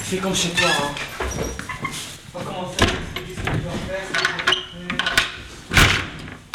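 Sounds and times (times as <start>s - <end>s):
speech: 0.1s - 5.2s
door slamming shut: 5.7s - 6.4s.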